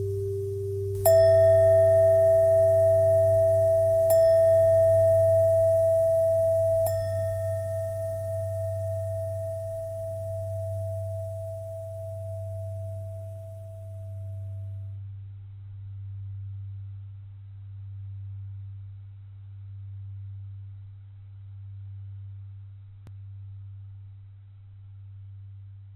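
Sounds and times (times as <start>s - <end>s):
long bell ringing: 0.0s - 14.8s.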